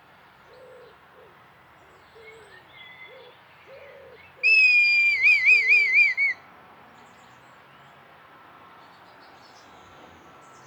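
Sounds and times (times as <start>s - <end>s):
red kite whistled call: 4.5s - 6.4s.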